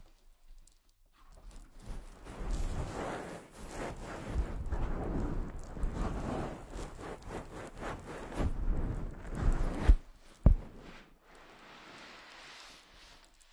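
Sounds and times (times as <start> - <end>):
rustling and rubbing of a head massage: 0.6 - 13.5
soft airy hiss: 6.0 - 13.5.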